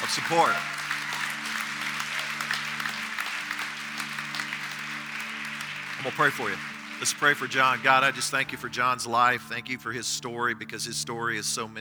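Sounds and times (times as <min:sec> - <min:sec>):
hand clapping applause: 0:00.0 - 0:09.3
speech: 0:00.2 - 0:00.8, 0:06.0 - 0:11.7.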